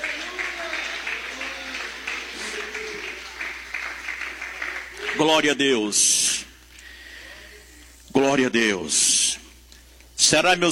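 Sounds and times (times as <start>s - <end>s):
audience clapping: 0.0s - 5.6s
speech: 5.2s - 6.3s, 8.2s - 9.2s, 10.2s - 10.7s.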